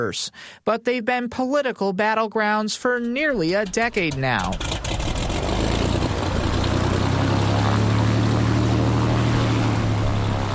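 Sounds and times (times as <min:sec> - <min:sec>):
speech: 0:00.0 - 0:05.1
cramped six-seater propeller plane engine drone in flight over Bears Ears National Monument: 0:03.4 - 0:10.5.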